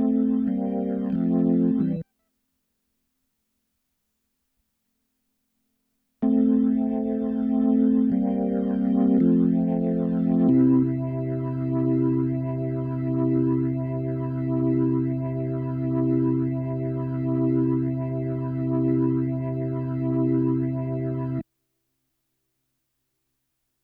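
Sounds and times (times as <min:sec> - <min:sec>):
keyboard playing: 0:00.0 - 0:02.0, 0:06.2 - 0:21.4.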